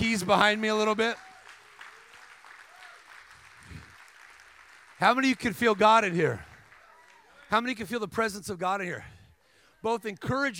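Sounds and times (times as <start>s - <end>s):
faint voices and cheers: 0.0s - 3.9s, 5.2s - 7.6s
audience applause: 0.0s - 7.6s
speech: 0.2s - 1.3s, 5.0s - 6.5s, 7.5s - 9.2s, 9.8s - 10.5s.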